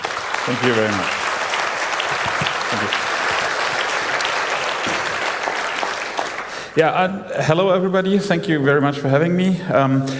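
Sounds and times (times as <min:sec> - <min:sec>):
audience applause welcoming a speaker at a conference talk: 0:00.0 - 0:06.8
speech: 0:00.5 - 0:01.2, 0:02.7 - 0:03.1, 0:06.8 - 0:10.1.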